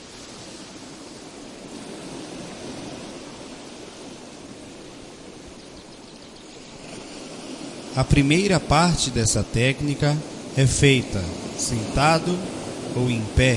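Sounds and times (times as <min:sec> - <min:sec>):
steady dense rainfall: 0:00.0 - 0:05.6, 0:06.6 - 0:13.5
speech: 0:08.0 - 0:13.5.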